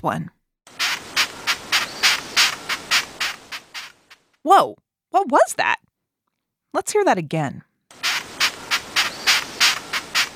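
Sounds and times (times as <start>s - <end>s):
speech: 0.0s - 0.4s, 4.4s - 5.8s, 6.7s - 8.1s
long-horned beetle raspy chirping: 0.8s - 4.2s, 8.0s - 10.3s.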